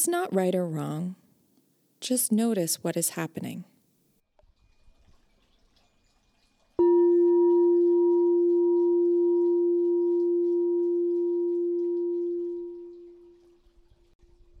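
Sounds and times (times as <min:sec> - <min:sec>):
speech: 0:00.0 - 0:01.2, 0:02.0 - 0:03.7
bell ringing: 0:06.8 - 0:13.2.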